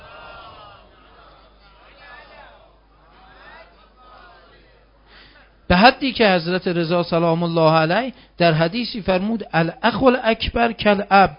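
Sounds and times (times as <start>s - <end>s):
crowd reciting salawat in unison: 0.0s - 4.7s
speech: 5.7s - 11.3s.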